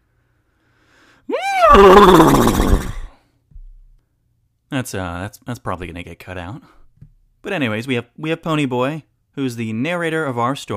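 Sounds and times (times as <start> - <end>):
person imitating a horse's whinny: 1.3 - 3.2
speech: 1.7 - 2.8, 4.8 - 6.8, 7.4 - 10.7.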